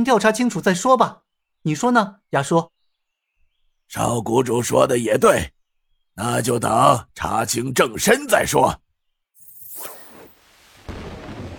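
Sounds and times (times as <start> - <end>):
speech: 0.0 - 2.8, 3.9 - 5.6, 6.2 - 8.8
low rumbling thunder: 10.9 - 11.5.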